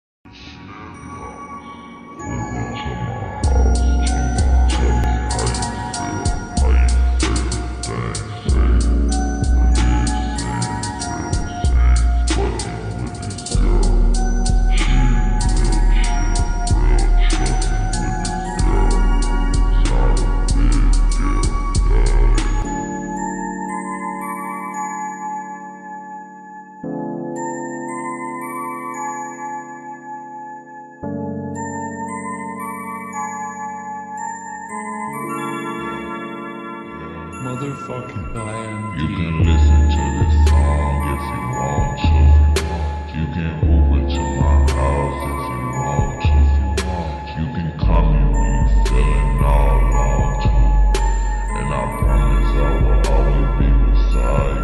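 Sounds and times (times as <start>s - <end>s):
slowed reverb music: 1.0s - 54.6s.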